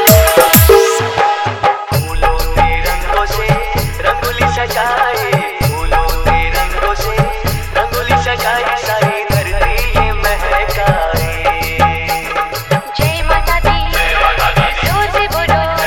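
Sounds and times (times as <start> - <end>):
DJ remix of a festival song: 0.0 - 15.8
hard dholki drumming: 0.0 - 15.8.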